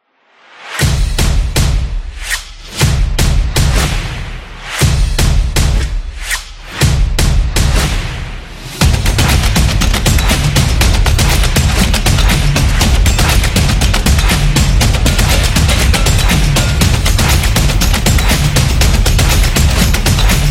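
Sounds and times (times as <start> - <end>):
action promo music: 0.5 - 20.4.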